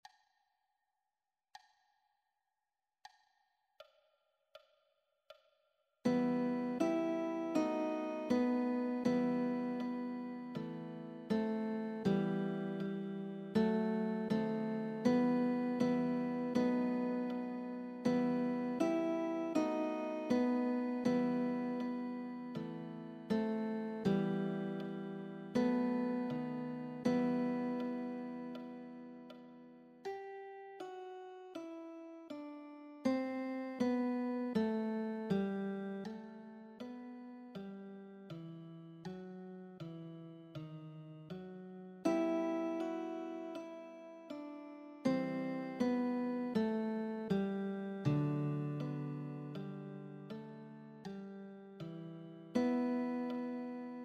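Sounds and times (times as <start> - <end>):
guitar: 6.1 - 54.0.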